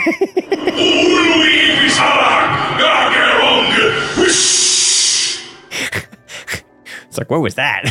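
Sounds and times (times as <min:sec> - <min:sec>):
speech: 0:00.0 - 0:01.1, 0:07.2 - 0:07.8
laughter: 0:00.0 - 0:01.6
voice grunting: 0:00.4 - 0:06.6
voiced breathy whoosh imitating a death sound effect: 0:02.3 - 0:06.0.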